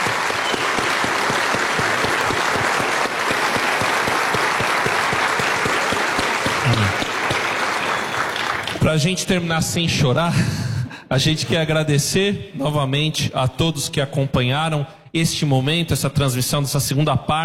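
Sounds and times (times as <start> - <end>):
audience applauding: 0.0 - 9.0
speech: 8.9 - 17.4.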